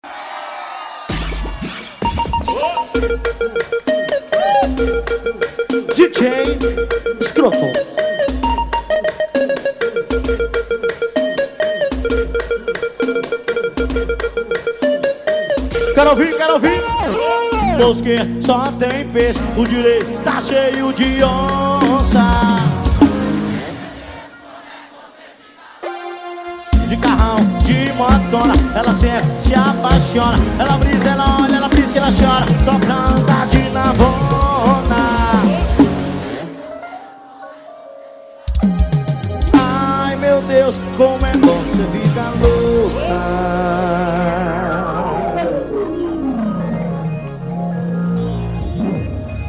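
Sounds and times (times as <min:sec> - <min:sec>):
forró music: 0:01.1 - 0:49.4.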